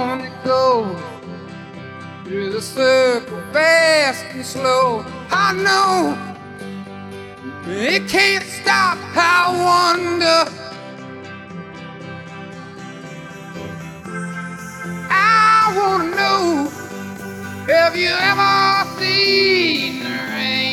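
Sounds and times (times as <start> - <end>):
guitar: 0.0 - 20.7
person singing: 2.3 - 6.5, 7.4 - 10.9, 14.8 - 20.7.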